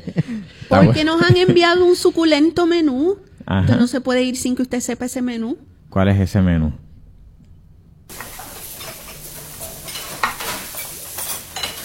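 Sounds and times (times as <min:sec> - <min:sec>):
speech: 0:00.4 - 0:06.8
food sizzling in a pan: 0:08.1 - 0:11.8
stirring: 0:08.1 - 0:11.8.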